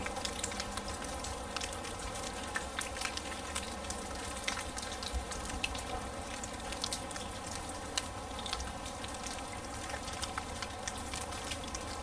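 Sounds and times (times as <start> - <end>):
smooth rain on grass: 0.0 - 12.0.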